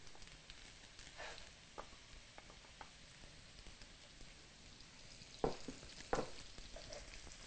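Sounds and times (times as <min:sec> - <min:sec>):
vegan butter sizzling as it melts in a hot pan: 0:00.0 - 0:07.4.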